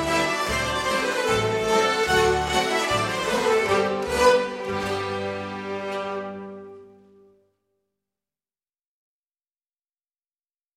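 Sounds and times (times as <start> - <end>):
schottische dance music: 0.0 - 7.1.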